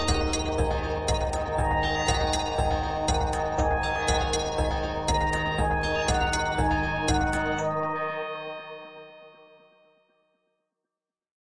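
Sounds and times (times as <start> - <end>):
march music: 0.0 - 8.0.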